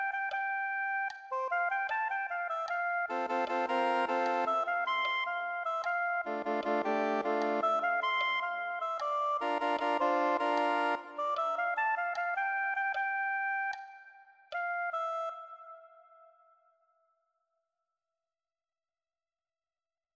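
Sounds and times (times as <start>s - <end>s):
soprano saxophone: 0.0s - 13.8s.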